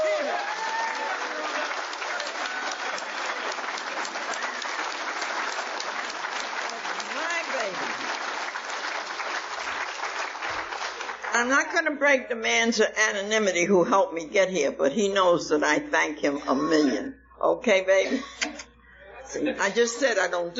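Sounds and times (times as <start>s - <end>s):
faint cheers and voices: 0.0s - 3.6s
audience applause: 0.0s - 11.4s
speech: 11.4s - 18.3s, 19.3s - 20.5s.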